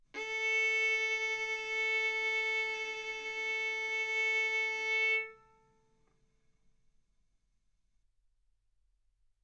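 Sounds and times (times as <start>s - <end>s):
violin bowed arco notes: 0.2s - 5.8s.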